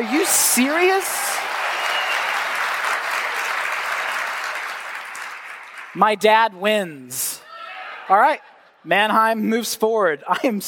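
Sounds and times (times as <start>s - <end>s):
speech: 0.0s - 1.2s, 6.0s - 7.3s, 8.1s - 10.6s
audience clapping: 0.0s - 6.3s.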